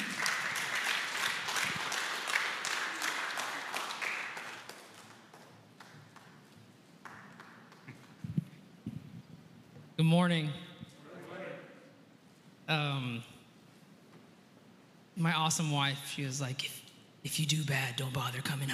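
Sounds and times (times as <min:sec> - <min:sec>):
church congregation clapping for a guest preacher: 0:00.0 - 0:08.6
speech: 0:10.0 - 0:10.6, 0:12.7 - 0:13.3, 0:15.2 - 0:18.7.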